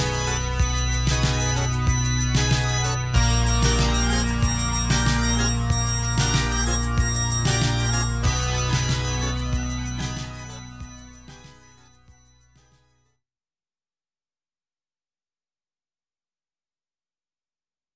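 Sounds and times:
news intro jingle music: 0.0 - 12.8.

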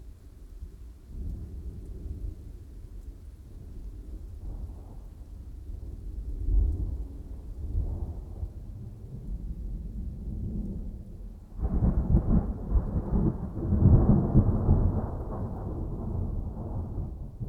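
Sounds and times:
dry extended thunderstorm: 1.1 - 17.4.

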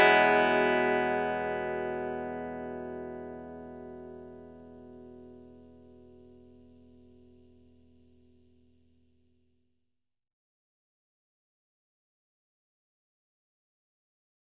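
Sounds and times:
clean electric guitar: 0.0 - 9.1.

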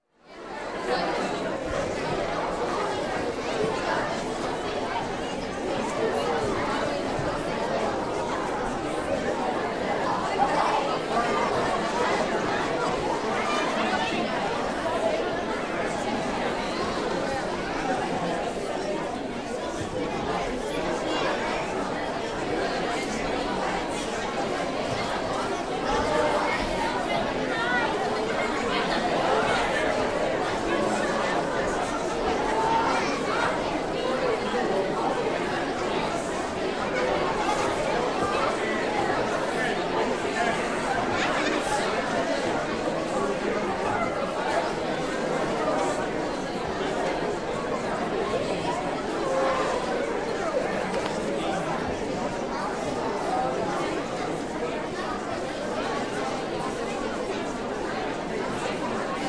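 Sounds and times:
children in a school auditorium awaiting a show: 0.2 - 59.2.

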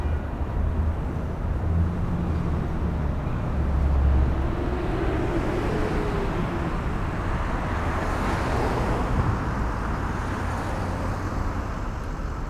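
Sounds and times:
light free-flowing urban traffic close by: 0.0 - 12.4.

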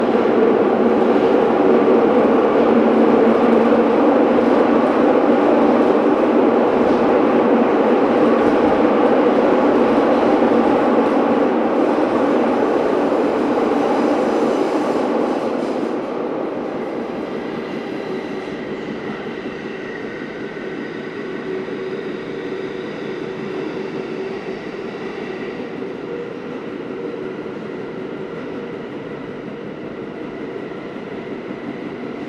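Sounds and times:
empty NYC subway train interior riding between stations: 0.0 - 32.2.

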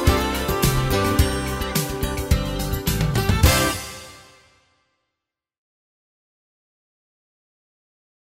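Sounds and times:
light jazz music: 0.0 - 4.5.

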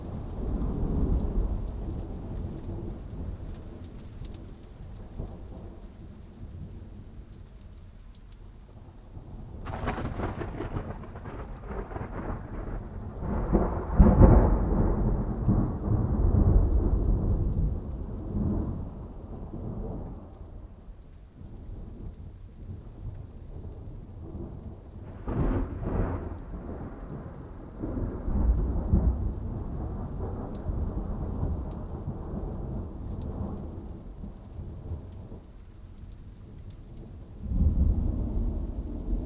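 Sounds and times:
very light rain: 0.0 - 39.2
thunder: 9.6 - 20.7, 23.5 - 35.4, 37.4 - 39.2.

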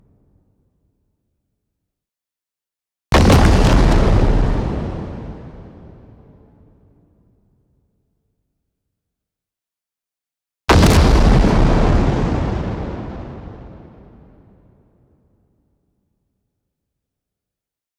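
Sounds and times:
long low rough distorted explosion with tail: 3.2 - 5.9, 10.7 - 14.5.

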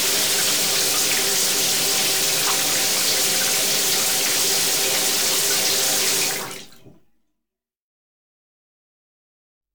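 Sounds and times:
shower running: 0.0 - 7.0.

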